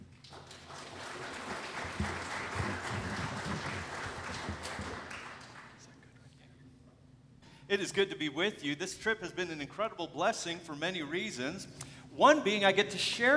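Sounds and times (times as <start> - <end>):
audience applause welcoming a guest speaker: 0.0 - 6.2
speech: 7.7 - 13.3.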